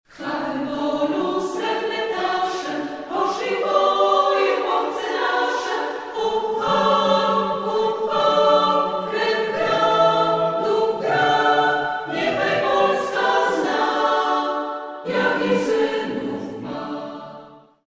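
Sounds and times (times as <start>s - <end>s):
a cappella singing: 0.1s - 17.8s.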